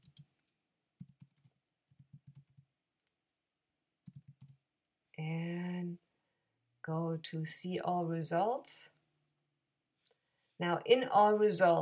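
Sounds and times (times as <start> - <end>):
typing a name on a computer keyboard: 0.0 - 3.2, 4.0 - 4.6
speech: 6.9 - 9.0, 10.6 - 11.8.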